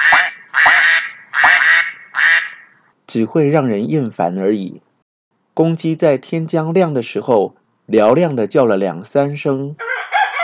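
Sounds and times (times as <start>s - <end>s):
ducks quacking: 0.0s - 2.7s
speech: 3.1s - 4.9s, 5.6s - 9.8s.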